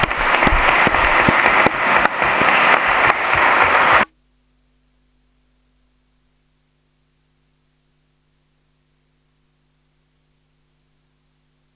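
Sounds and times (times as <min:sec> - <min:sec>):
crowd applauding: 0:00.0 - 0:04.1
faint low hum: 0:00.0 - 0:11.7.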